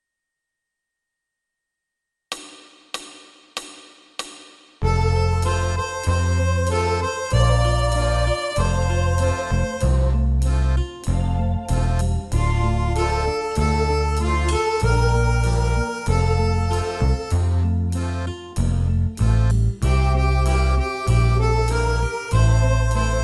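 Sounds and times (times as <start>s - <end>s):
accordion playing tutti: 4.8s - 23.2s.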